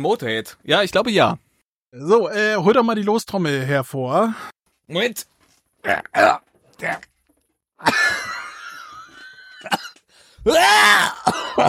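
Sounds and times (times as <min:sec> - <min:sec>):
speech: 0:00.0 - 0:07.1, 0:07.8 - 0:08.3, 0:09.6 - 0:11.6
person coughing as a crumb comes up the throat: 0:07.8 - 0:08.3, 0:09.6 - 0:11.6.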